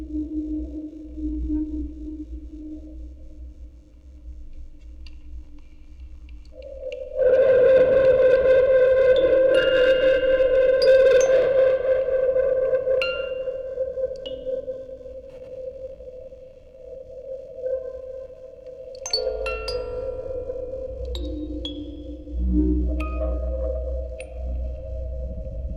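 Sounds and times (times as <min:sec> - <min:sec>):
tape recording: 0:00.0 - 0:25.7
music box quartet: 0:19.0 - 0:24.8.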